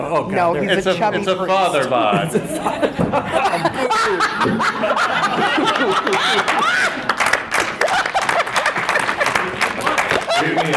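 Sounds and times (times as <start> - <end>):
speech: 0.0 - 7.1
snickers and laughter at a comedy show: 2.2 - 10.7
audience applause at a comedy show: 4.6 - 10.7.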